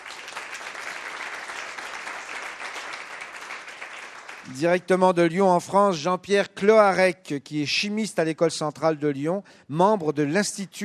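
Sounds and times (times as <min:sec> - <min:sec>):
audience applause: 0:00.0 - 0:04.5
speech: 0:04.5 - 0:10.8.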